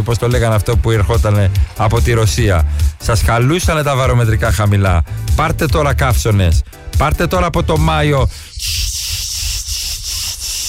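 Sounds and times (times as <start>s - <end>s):
speech: 0.0s - 8.9s
cicadas on a balcony: 8.5s - 10.6s.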